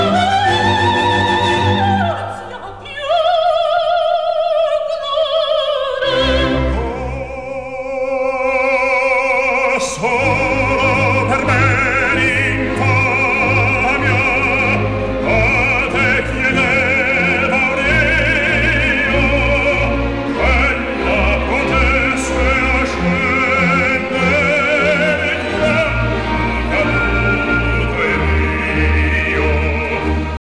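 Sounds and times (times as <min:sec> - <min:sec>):
classical music: 0:00.0 - 0:30.4.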